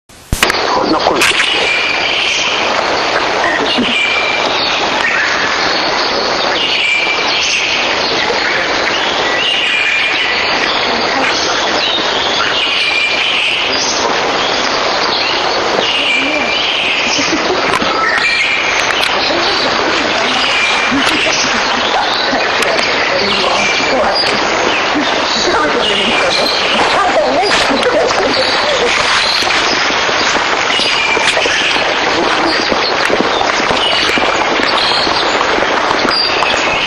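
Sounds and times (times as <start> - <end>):
brown-headed thrush in Togakushi: 0.5 - 36.8
laughter: 3.3 - 4.1, 17.0 - 18.1, 19.1 - 29.2, 32.0 - 32.7.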